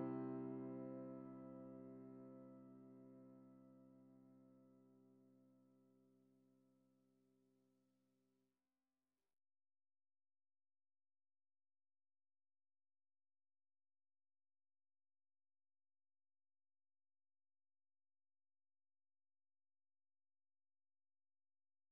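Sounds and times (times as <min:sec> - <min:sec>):
MIDI piano: 0:00.0 - 0:04.8.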